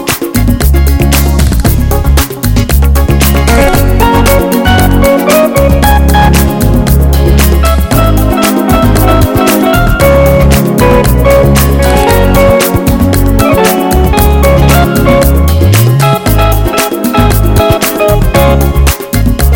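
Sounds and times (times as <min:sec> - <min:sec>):
smooth pretty disco music: 0:00.0 - 0:19.5.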